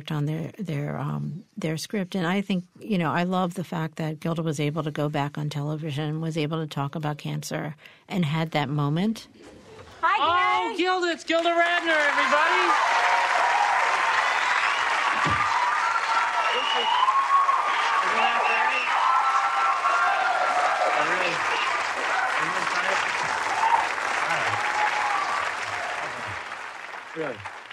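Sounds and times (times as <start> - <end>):
speech: 0.0 - 9.6, 10.2 - 13.0, 16.8 - 17.0, 27.2 - 27.5
scattered voices and cheers: 10.1 - 27.7
studio audience applause: 10.8 - 27.7.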